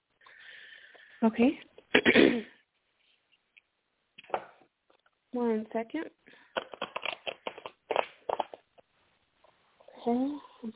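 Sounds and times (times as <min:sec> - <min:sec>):
speech: 0:01.2 - 0:02.5, 0:05.4 - 0:06.4, 0:10.0 - 0:10.7
cards being handled and shuffled for a card reading: 0:06.5 - 0:08.7.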